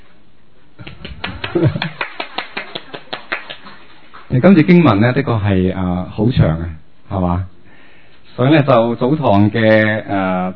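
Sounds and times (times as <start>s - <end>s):
audience hands clapping in a steady rhythm: 0.8s - 3.9s
speech: 1.5s - 2.0s, 4.4s - 7.5s, 8.4s - 10.5s.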